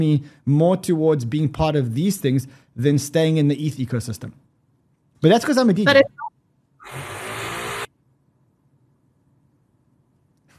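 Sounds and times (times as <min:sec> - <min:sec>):
speech: 0:00.0 - 0:04.4, 0:05.2 - 0:06.2
drilling from building work: 0:06.8 - 0:07.9.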